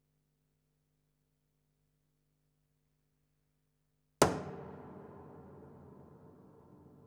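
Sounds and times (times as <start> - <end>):
thump on piano body with pedal: 4.2 - 6.9.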